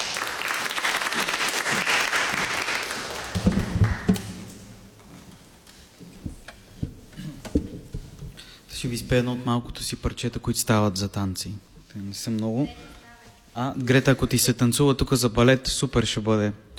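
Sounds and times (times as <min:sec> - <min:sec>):
audience applause: 0:00.0 - 0:04.3
speech: 0:08.8 - 0:13.0, 0:13.6 - 0:16.7.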